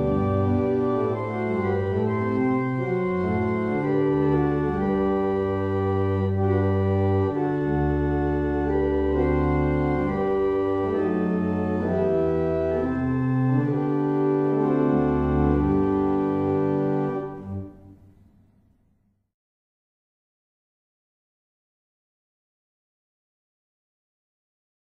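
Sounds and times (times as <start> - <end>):
barrel organ playing: 0.0 - 17.9.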